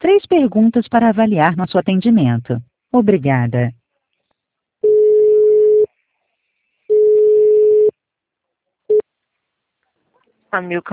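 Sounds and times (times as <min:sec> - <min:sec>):
speech: 0:00.1 - 0:03.8, 0:10.5 - 0:10.9
telephone line beeps while a call is transferred: 0:04.8 - 0:05.9, 0:06.9 - 0:07.9.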